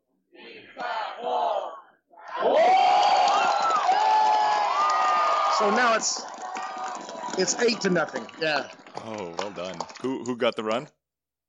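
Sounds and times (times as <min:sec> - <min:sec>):
baseball stadium crowd chanting a cheer: 0:00.3 - 0:05.8
speech: 0:05.6 - 0:06.3, 0:07.4 - 0:11.0.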